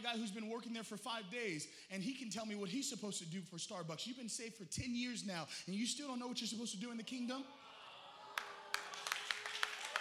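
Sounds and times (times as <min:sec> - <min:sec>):
speech: 0:00.0 - 0:07.6
audience clapping: 0:08.3 - 0:09.9.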